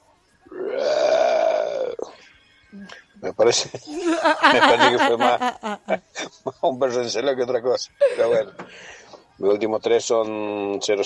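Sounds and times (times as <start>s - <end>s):
person imitating a lion or tiger roar: 0.6s - 2.0s
speech: 3.2s - 11.0s
laughter: 3.9s - 6.4s.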